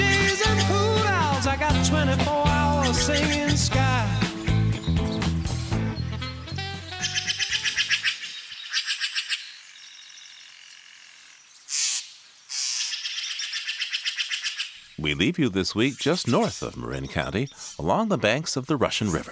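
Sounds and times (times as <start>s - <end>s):
songbirds singing along the Russian River: 0.0s - 19.3s
speech: 1.9s - 4.2s, 15.2s - 19.3s.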